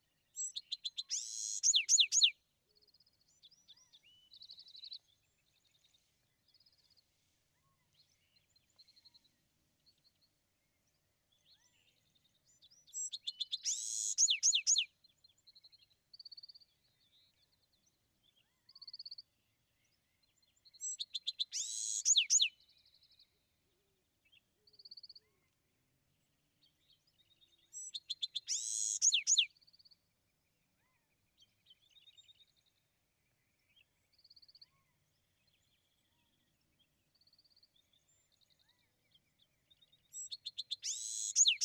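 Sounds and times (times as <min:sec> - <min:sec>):
Bewick's wren singing: 0:00.4 - 0:02.3, 0:13.0 - 0:14.9, 0:20.8 - 0:22.5, 0:27.8 - 0:29.5, 0:40.2 - 0:41.6.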